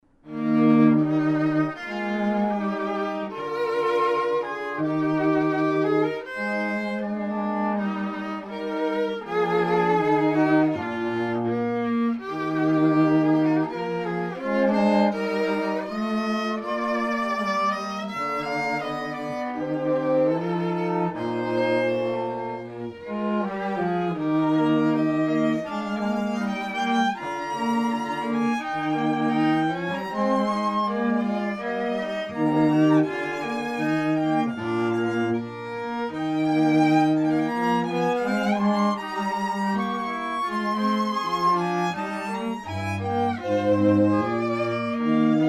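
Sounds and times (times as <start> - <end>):
musical trio: 0.0 - 45.4.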